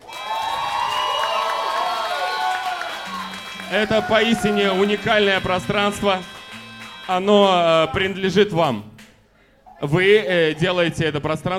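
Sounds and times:
crowd cheering and whooping for the Yeltsin bar's fifth birthday: 0:00.0 - 0:08.2
audience applause for the Yeltsin bar's fifth birthday: 0:00.0 - 0:08.3
speech: 0:03.7 - 0:06.3, 0:07.1 - 0:08.9, 0:09.8 - 0:11.5.

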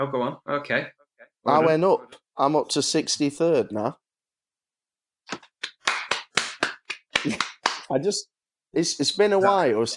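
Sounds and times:
speech: 0:00.0 - 0:04.0, 0:05.3 - 0:05.5, 0:07.2 - 0:09.9
slow uneven sarcastic handclaps: 0:05.3 - 0:07.9.

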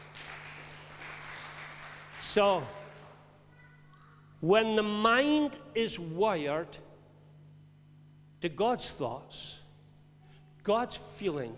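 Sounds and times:
audience applauding: 0:00.0 - 0:03.3
speech: 0:02.3 - 0:02.8, 0:04.4 - 0:06.9, 0:08.4 - 0:09.6, 0:10.6 - 0:11.5.

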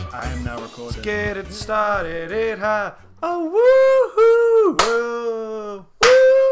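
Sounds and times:
speech: 0:00.8 - 0:05.9
clap sound effect: 0:04.8 - 0:05.1, 0:06.0 - 0:06.3.

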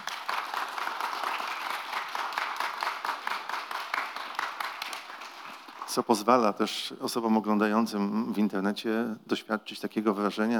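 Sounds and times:
audience applause: 0:00.0 - 0:06.0
speech: 0:06.0 - 0:10.5.

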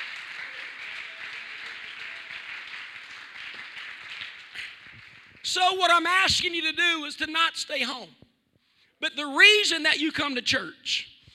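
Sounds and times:
audience clapping hands: 0:00.0 - 0:06.0
speech: 0:05.5 - 0:08.2, 0:09.0 - 0:11.1.

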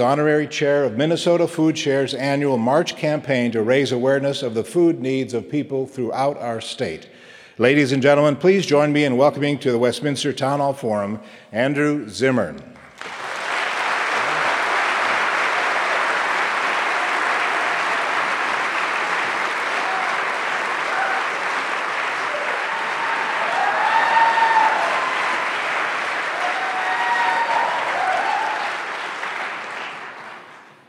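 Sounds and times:
speech: 0:00.0 - 0:13.2
rapturous and thunderous applause: 0:12.9 - 0:30.8.

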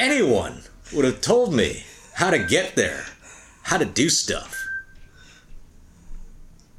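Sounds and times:
speech: 0:00.0 - 0:04.6
faint electronic alarm beeps: 0:02.3 - 0:02.8, 0:04.5 - 0:05.0.

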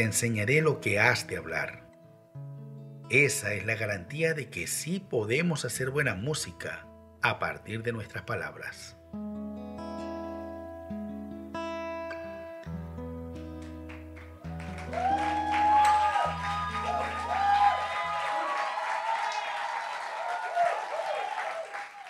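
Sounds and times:
speech: 0:00.0 - 0:01.8, 0:03.1 - 0:09.4
audience applause: 0:13.6 - 0:22.0.

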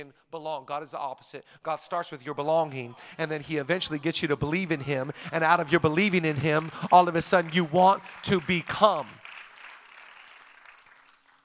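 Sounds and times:
speech: 0:00.0 - 0:09.2
scattered clapping: 0:05.6 - 0:11.4.

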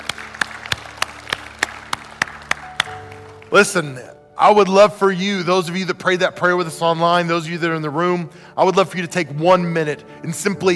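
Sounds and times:
round of applause: 0:00.0 - 0:03.6
speech: 0:03.5 - 0:10.7.

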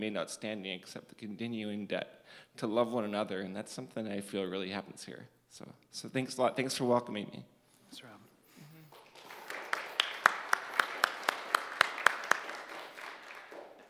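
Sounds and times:
speech: 0:00.0 - 0:08.2
audience clapping: 0:08.8 - 0:13.8.

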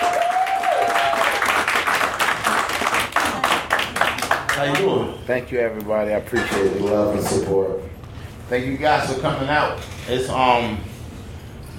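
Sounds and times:
crowd applauding: 0:00.0 - 0:05.0
speech: 0:04.6 - 0:10.9.

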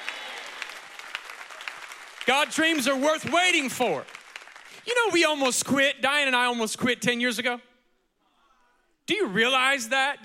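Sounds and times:
audience clapping hands: 0:00.0 - 0:04.9
speech: 0:02.3 - 0:04.2, 0:04.8 - 0:07.7, 0:09.1 - 0:10.2.

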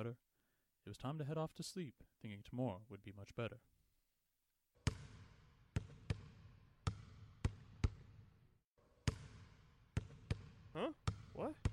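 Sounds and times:
speech: 0:00.0 - 0:00.2, 0:00.8 - 0:03.8, 0:10.8 - 0:11.6
loud basketball dribbling: 0:04.8 - 0:08.4, 0:09.0 - 0:11.7.

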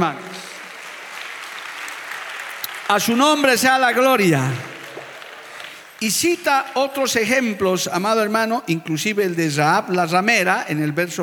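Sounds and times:
speech: 0:00.0 - 0:00.2, 0:02.9 - 0:04.7, 0:06.0 - 0:11.2
audience applause: 0:00.0 - 0:06.4.

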